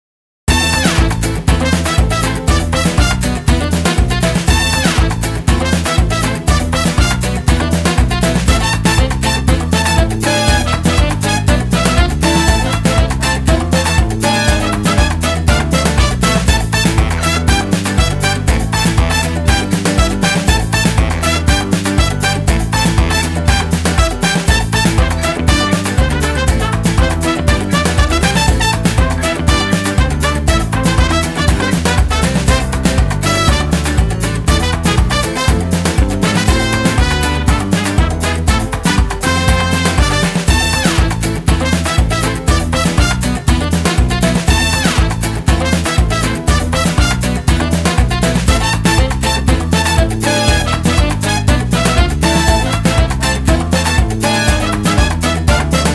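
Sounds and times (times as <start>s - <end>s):
folk music: 0.5s - 55.9s.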